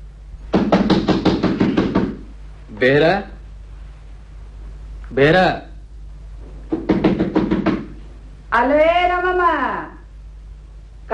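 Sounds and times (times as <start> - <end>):
knocking on a door: 0.5 - 2.3, 6.7 - 8.0
speech: 2.8 - 3.3, 5.1 - 5.7, 8.6 - 9.9.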